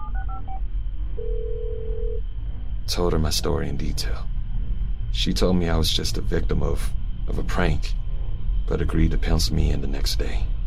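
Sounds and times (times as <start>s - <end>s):
steady ringing tone on the telephone line: 0.0s - 0.6s, 1.2s - 2.2s
low rumble: 0.0s - 10.6s
speech: 2.9s - 4.3s, 5.2s - 8.0s, 8.7s - 10.5s.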